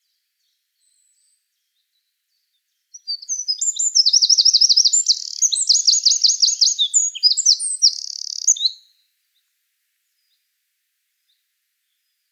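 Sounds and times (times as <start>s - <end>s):
Eurasian wren singing: 2.9s - 8.8s.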